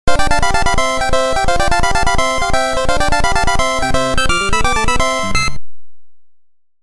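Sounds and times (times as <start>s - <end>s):
dance music: 0.1s - 5.6s.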